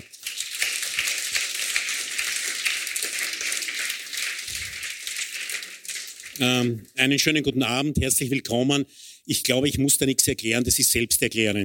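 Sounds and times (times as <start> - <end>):
audience applause: 0.0 - 6.7
speech: 6.4 - 11.6.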